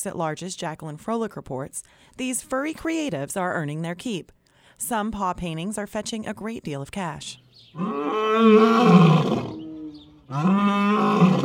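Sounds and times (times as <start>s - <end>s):
speech: 0.0s - 9.5s, 10.3s - 11.4s
African lions roaring: 7.8s - 11.4s.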